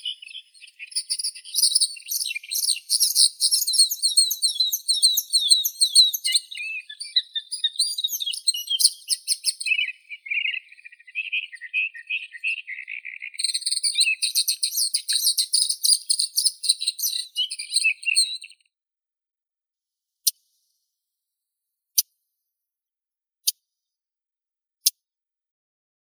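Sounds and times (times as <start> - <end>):
Acrocephalus agricola warbler: 0.0 - 18.5.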